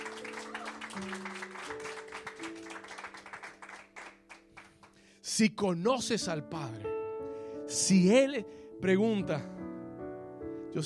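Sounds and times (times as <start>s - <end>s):
crowd applause: 0.0s - 4.9s
speech: 1.0s - 1.4s, 5.4s - 6.9s, 7.9s - 9.6s.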